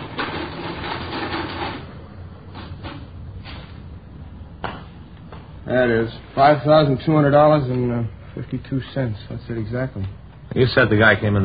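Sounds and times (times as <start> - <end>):
adding machine whirring and clunking: 0.0 - 3.1
speech: 5.7 - 11.4.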